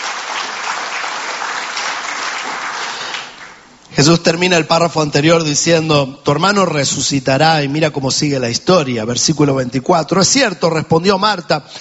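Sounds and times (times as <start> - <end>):
audience applause: 0.0 - 3.6
speech: 4.0 - 11.7.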